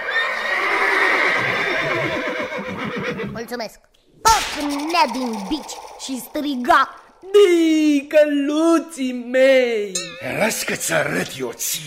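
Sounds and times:
horse neighing in a long shrill whinny: 0.0 - 3.4
speech: 3.5 - 11.8.

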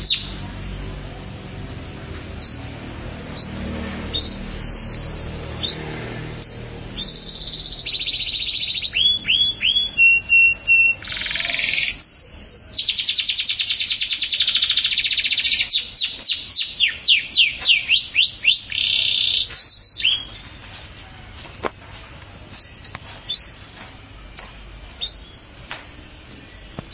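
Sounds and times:
canary singing: 0.0 - 0.6, 2.3 - 26.9.

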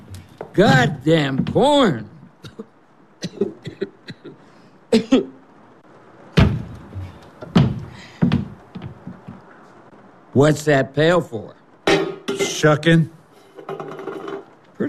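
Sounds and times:
wooden milking stool knocks and clunks being set down: 0.0 - 1.7, 6.4 - 9.4
speech: 0.6 - 2.7, 3.4 - 3.8, 4.9 - 5.4, 10.4 - 11.6, 12.6 - 13.2.

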